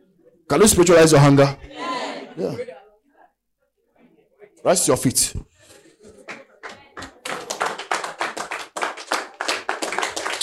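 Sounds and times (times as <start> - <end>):
speech: 0.5 - 2.8, 4.6 - 5.5
audience clapping hands: 6.1 - 10.4.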